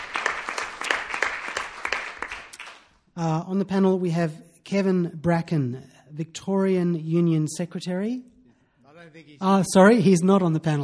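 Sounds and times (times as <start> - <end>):
audience applause: 0.0 - 2.9
speech: 3.2 - 8.3, 9.0 - 10.8.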